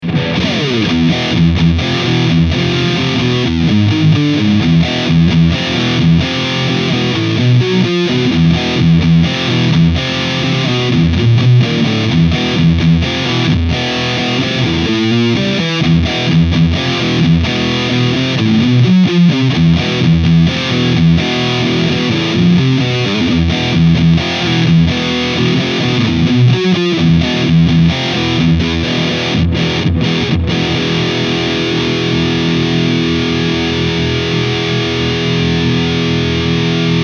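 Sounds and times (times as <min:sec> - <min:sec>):
guitar through Peavey Invective amp at full gain, scooped: 0:00.0 - 0:37.0.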